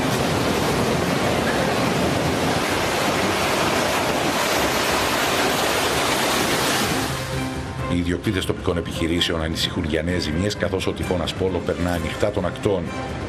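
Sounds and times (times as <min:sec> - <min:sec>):
ocean swell surf hitting the shore: 0:00.0 - 0:07.5
speech: 0:08.1 - 0:13.2.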